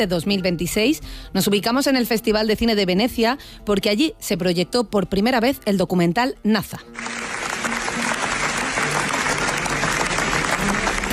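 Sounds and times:
speech: 0.0s - 7.4s
audience ovation after a documentary screening at the Venice Film Festival: 7.0s - 11.1s.

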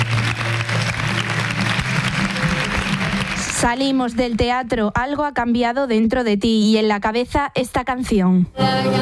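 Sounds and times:
standing theatre audience applauding: 0.0s - 4.7s
speech: 3.6s - 9.0s.

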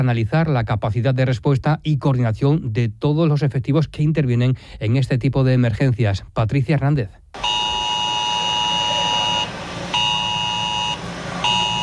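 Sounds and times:
speech: 0.0s - 7.5s
forest fire drill alert buzzing in Alcuéscar: 7.4s - 11.8s.

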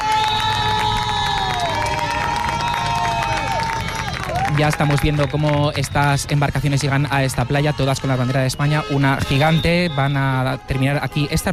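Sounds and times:
crowd applauding: 0.0s - 8.5s
speech: 4.6s - 11.5s.

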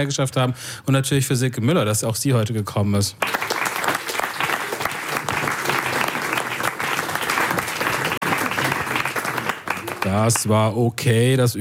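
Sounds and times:
speech: 0.0s - 3.6s, 10.2s - 11.5s
audience applause: 3.2s - 10.6s.

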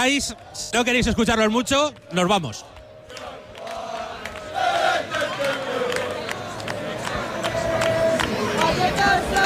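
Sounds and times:
speech: 0.0s - 2.8s
English football fans chanting and shouting: 1.9s - 9.4s.

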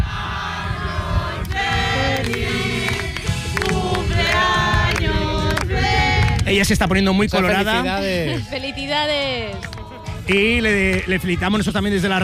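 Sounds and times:
group of people singing on a Spanish radio show: 0.0s - 6.6s, 7.4s - 10.4s
speech: 6.5s - 12.2s.

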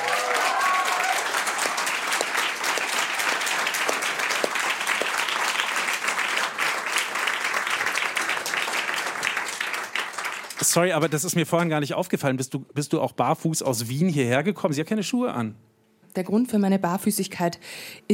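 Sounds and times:
audience applause: 0.0s - 11.6s
speech: 10.8s - 18.1s.

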